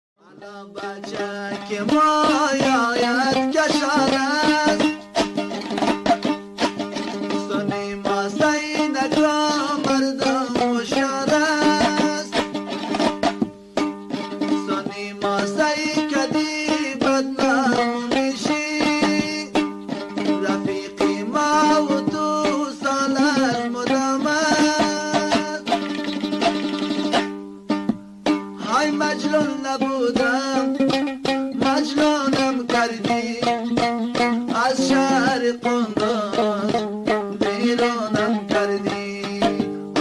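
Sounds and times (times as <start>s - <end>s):
Afghan music: 0.2s - 39.9s.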